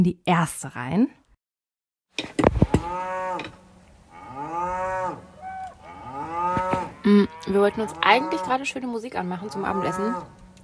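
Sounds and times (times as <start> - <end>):
speech: 0.0 - 1.2, 2.2 - 3.6, 7.0 - 10.4
cows mooing near a parked camper van: 2.7 - 10.6.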